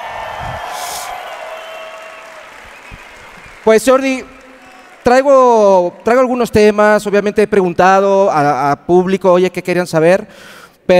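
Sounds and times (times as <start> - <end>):
audience applause: 0.0 - 5.6
speech: 3.6 - 4.3, 5.0 - 10.9.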